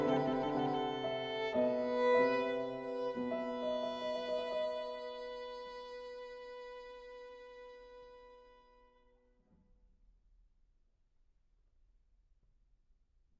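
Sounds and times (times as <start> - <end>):
Largo of a violin and piano sonata in G major: 0.0 - 8.8.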